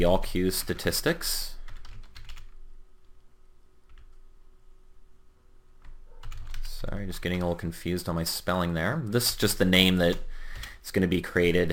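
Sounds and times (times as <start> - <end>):
speech: 0.0 - 1.6, 6.9 - 11.7
typing on a computer keyboard: 1.7 - 2.6, 5.8 - 6.8.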